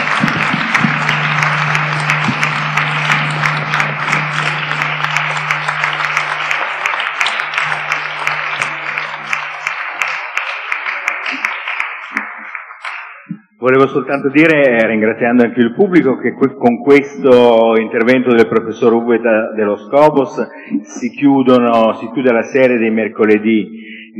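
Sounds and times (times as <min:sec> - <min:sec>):
low steady hum: 0:00.0 - 0:09.6
audience applause: 0:00.0 - 0:13.3
speech: 0:13.6 - 0:24.1.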